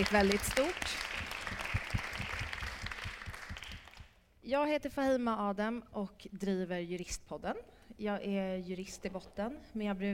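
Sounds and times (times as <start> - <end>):
speech: 0.0 - 1.0, 4.5 - 10.1
audience applause: 0.0 - 4.0.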